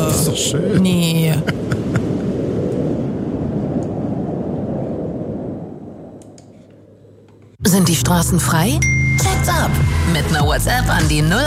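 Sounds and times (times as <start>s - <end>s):
cold howling wind sound effect: 0.0s - 7.6s
speech: 0.4s - 1.6s, 7.9s - 11.4s.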